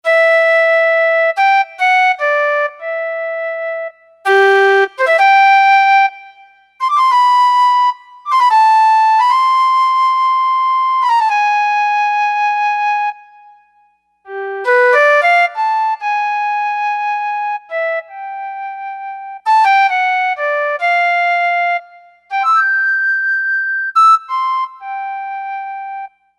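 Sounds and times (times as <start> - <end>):
flute: 0.0 - 26.3.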